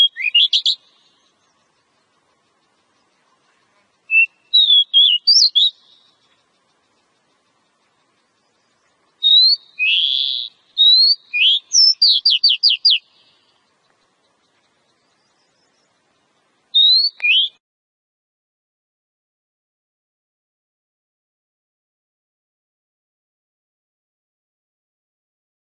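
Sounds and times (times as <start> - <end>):
Oriental magpie-robin whistling phrases: 0.0 - 0.8, 4.1 - 6.1, 9.2 - 13.2, 16.7 - 17.6.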